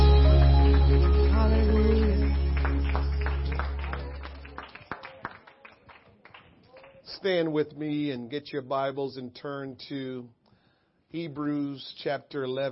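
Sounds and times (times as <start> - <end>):
audience clapping in worship: 0.0 - 7.2
speech: 7.2 - 10.4, 11.1 - 12.6.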